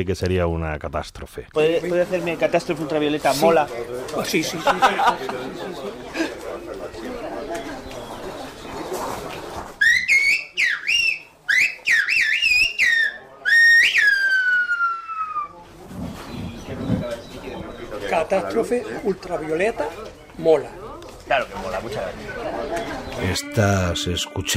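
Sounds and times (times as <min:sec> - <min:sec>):
speech: 0:00.0 - 0:07.2, 0:18.3 - 0:24.5
talking: 0:01.6 - 0:24.5
laughter: 0:04.2 - 0:07.7, 0:21.9 - 0:23.4
whistled language: 0:09.8 - 0:15.6.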